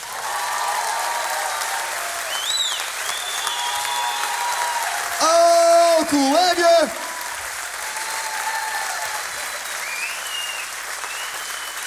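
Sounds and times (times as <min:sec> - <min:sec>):
crowd applause: 0:00.0 - 0:11.8
whistles: 0:02.3 - 0:04.4, 0:09.6 - 0:11.8.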